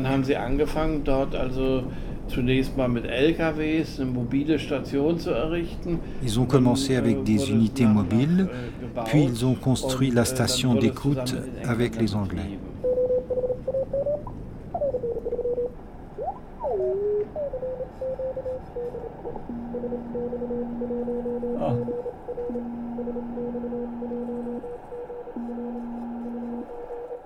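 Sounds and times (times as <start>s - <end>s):
speech: 0.0s - 12.7s
Morse code CQ call from a Bulgarian amateur radio station: 12.8s - 27.2s.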